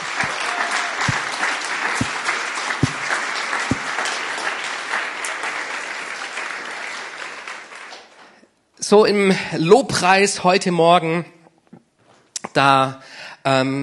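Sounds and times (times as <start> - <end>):
audience applause: 0.0 - 8.3
speech: 8.9 - 11.4, 12.6 - 13.8.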